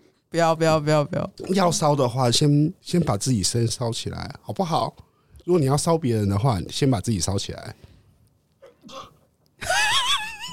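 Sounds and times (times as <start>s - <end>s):
speech: 0.3s - 7.9s
sneeze: 8.6s - 9.2s.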